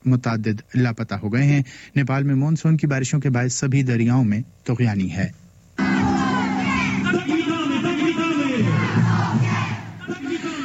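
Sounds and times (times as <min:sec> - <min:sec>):
speech: 0:00.0 - 0:05.4
large crowd chanting slogans to welcome Pope Francis in Poland: 0:05.8 - 0:10.2.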